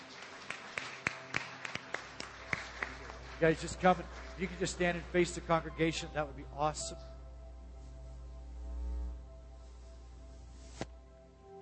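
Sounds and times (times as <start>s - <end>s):
church congregation clapping for small group leaders: 0.0s - 5.8s
speech: 3.4s - 7.1s.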